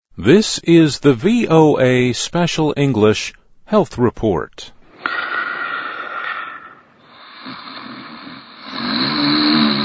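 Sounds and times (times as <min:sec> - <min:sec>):
speech: 0:00.2 - 0:05.3
loud rough rattling snoring: 0:05.0 - 0:09.8.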